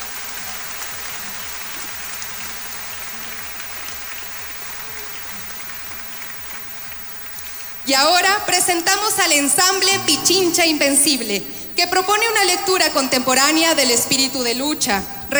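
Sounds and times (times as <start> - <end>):
crowd clapping: 0.0 - 15.3
speech: 7.9 - 15.3.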